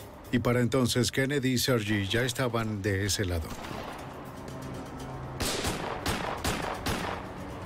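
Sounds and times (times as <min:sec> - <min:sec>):
speech: 0:00.3 - 0:03.9
gunshots: 0:05.4 - 0:07.3.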